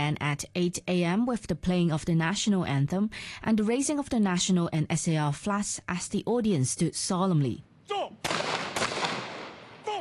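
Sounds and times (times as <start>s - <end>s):
speech: 0.1s - 8.6s
gun salute fired by a police guard unit at a ceremony: 8.2s - 10.0s.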